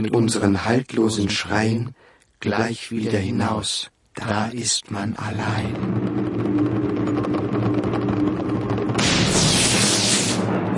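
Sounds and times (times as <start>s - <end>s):
speech: 0.0s - 6.7s
thunder: 5.7s - 10.7s.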